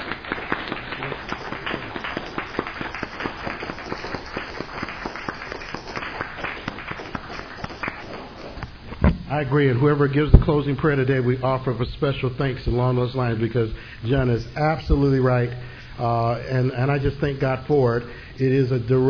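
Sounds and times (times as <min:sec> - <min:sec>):
group of people clapping: 0:00.0 - 0:08.7
speech: 0:09.3 - 0:19.0.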